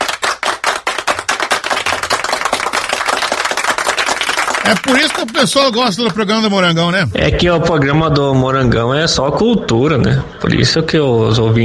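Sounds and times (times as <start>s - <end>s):
group applauding: 0.0s - 7.1s
speech: 4.7s - 11.6s.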